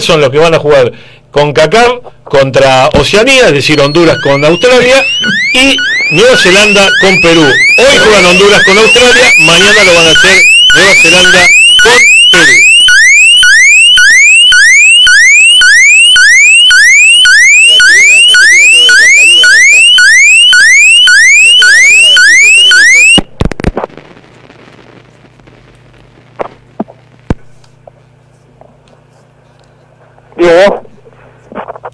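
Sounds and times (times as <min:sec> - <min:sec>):
speech: 0:00.0 - 0:12.6
siren: 0:03.4 - 0:23.3.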